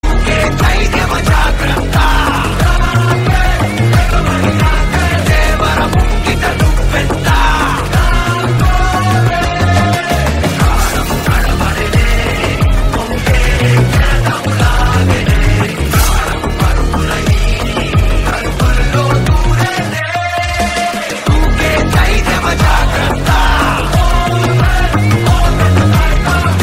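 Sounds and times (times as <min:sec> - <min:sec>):
background music: 0:00.0 - 0:26.6.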